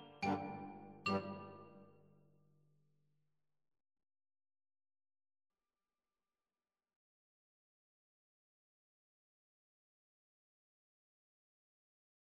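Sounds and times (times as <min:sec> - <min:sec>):
xylophone: 0:00.0 - 0:01.8.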